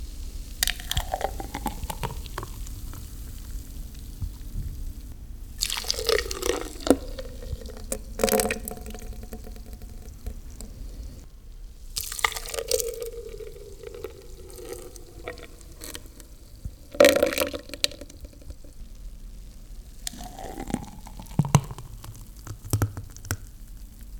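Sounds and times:
smoothie pouring into a glass: 0.6 - 4.4, 5.6 - 11.3, 11.9 - 18.6, 20.1 - 23.3.

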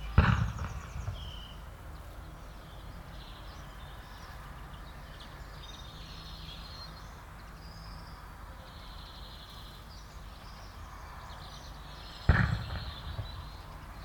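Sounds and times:
gunshots at pigeon shooting: 0.1 - 1.9, 12.3 - 13.9.

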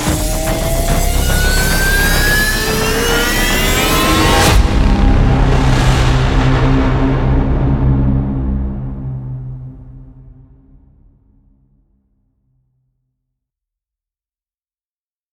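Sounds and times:
cinematic epic hybrid riser: 0.0 - 11.5.

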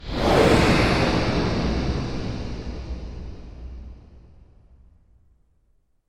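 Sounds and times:
whoosh: 0.0 - 4.6.

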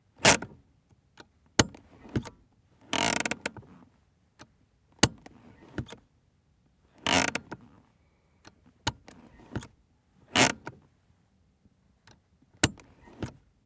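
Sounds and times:
Rover 216 GSi handbrake moving up and down: 1.6 - 3.8, 5.0 - 6.0, 7.0 - 7.8, 8.4 - 10.8, 12.1 - 13.5.

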